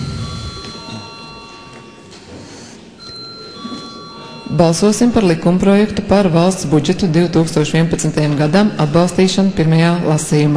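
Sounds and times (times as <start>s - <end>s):
parliament chamber bell ringing: 0.0s - 6.7s
speech: 4.5s - 10.5s.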